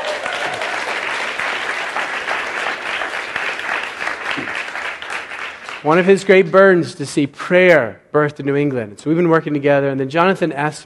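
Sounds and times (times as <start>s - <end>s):
audience applause: 0.0s - 6.1s
speech: 5.8s - 10.8s.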